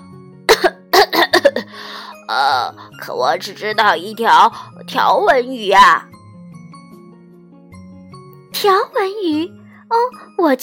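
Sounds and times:
cough: 0:00.5 - 0:01.6
speech: 0:02.3 - 0:06.1, 0:08.6 - 0:10.6.

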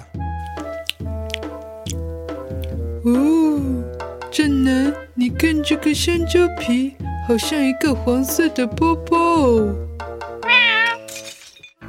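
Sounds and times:
speech: 0:03.0 - 0:09.8
cat meowing: 0:10.4 - 0:11.1.

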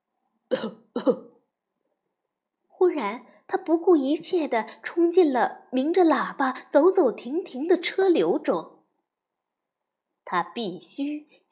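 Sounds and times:
speech: 0:00.5 - 0:01.3, 0:02.8 - 0:08.8, 0:10.3 - 0:11.4
coughing: 0:00.5 - 0:01.4.

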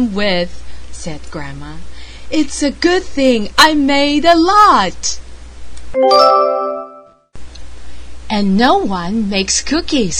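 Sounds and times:
speech: 0:00.0 - 0:05.2, 0:05.9 - 0:06.8, 0:08.3 - 0:10.1
doorbell ringing: 0:06.0 - 0:07.2.

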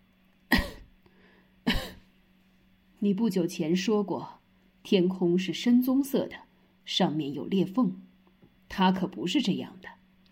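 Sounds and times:
person coughing: 0:00.5 - 0:01.0, 0:01.6 - 0:02.1
speech: 0:03.0 - 0:08.1, 0:08.7 - 0:10.0.

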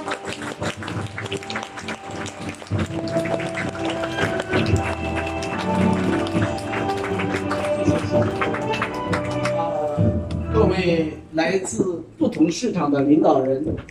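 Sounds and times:
large audience applauding: 0:00.0 - 0:09.9
music playing: 0:00.0 - 0:11.6
speech: 0:10.8 - 0:13.8.

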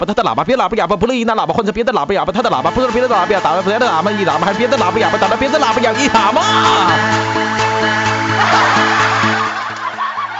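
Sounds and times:
speech: 0:00.0 - 0:09.1
laughter: 0:04.6 - 0:10.3
large crowd applause: 0:06.2 - 0:10.3.

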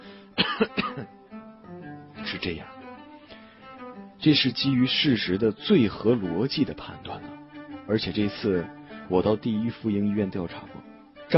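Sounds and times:
throaty cough: 0:00.4 - 0:01.1
speech: 0:00.6 - 0:00.9, 0:02.4 - 0:02.7, 0:04.2 - 0:07.3, 0:07.9 - 0:11.3.

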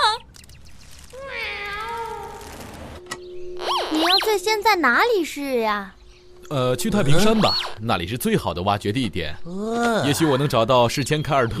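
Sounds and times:
cat meowing in the sewer: 0:01.2 - 0:02.6
speech: 0:04.3 - 0:11.5.

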